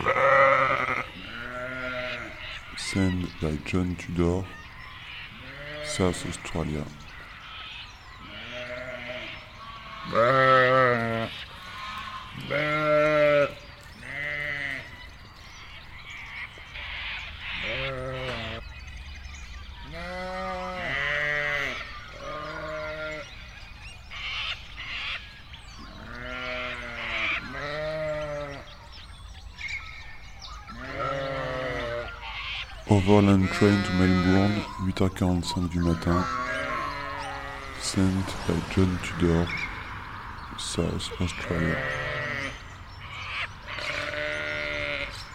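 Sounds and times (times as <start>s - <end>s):
flock of Suffolk sheep bleating at feeding time: 0.0s - 3.5s, 5.3s - 6.6s, 8.2s - 14.9s, 17.6s - 18.6s, 19.9s - 23.3s, 26.0s - 28.7s, 30.7s - 32.2s, 33.0s - 34.9s, 35.6s - 39.8s, 40.8s - 42.6s, 43.7s - 45.3s
speech: 2.9s - 4.6s, 5.9s - 7.1s, 10.1s - 11.4s, 12.5s - 12.8s, 33.1s - 36.6s, 37.9s - 39.6s, 40.8s - 42.0s.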